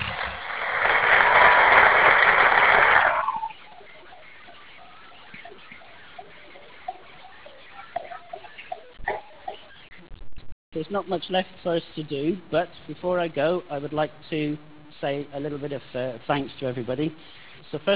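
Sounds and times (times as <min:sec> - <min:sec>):
audience applause: 0:00.0 - 0:03.6
speech: 0:10.9 - 0:17.9.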